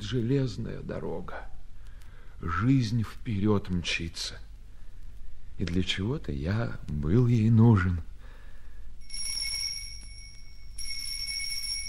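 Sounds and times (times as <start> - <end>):
speech: 0.1 - 1.5, 2.4 - 4.5, 5.6 - 8.1
doorbell ringing: 9.0 - 11.8.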